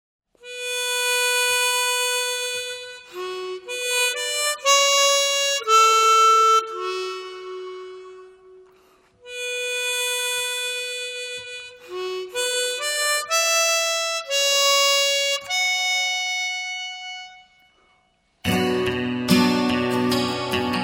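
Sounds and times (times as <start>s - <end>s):
acoustic music: 0.4s - 20.8s.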